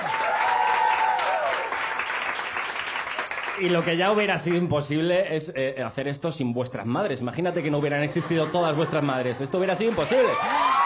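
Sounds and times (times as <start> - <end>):
audience applause: 0.0 - 4.6, 8.2 - 10.8
speech: 3.6 - 10.7
laughter: 7.4 - 10.8.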